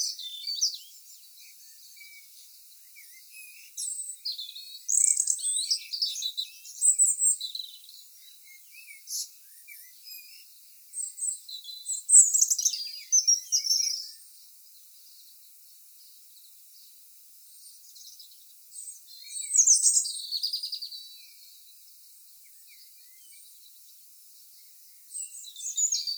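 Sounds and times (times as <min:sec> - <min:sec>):
British birds singing at dawn: 0:00.0 - 0:26.1.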